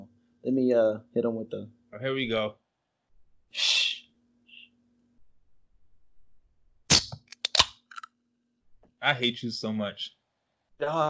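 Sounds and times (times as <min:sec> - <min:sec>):
speech: 0:00.4 - 0:02.6, 0:03.5 - 0:03.8, 0:09.0 - 0:10.2, 0:10.8 - 0:11.0
can of black cherry White Claw hard seltzer cracking open: 0:06.9 - 0:08.1.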